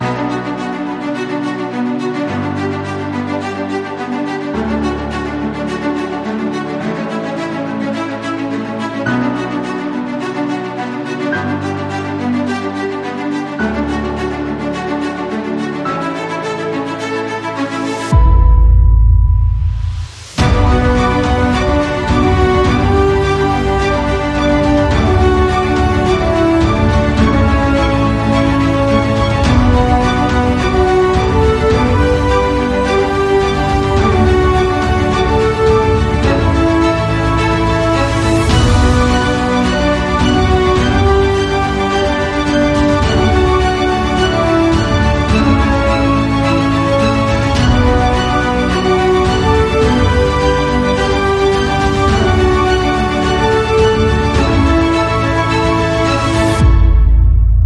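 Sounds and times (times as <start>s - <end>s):
action adventure epic trailer music: 0.0s - 57.6s.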